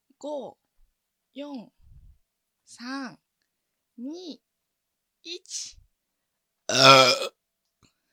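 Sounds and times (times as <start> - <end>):
burp: 6.7 - 7.4.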